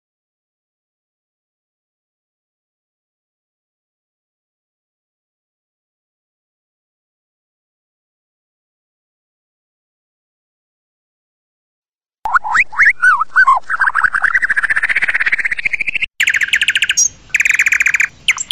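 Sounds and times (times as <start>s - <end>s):
white-rumped shama singing whistled notes, chattering and trills: 12.3s - 18.5s.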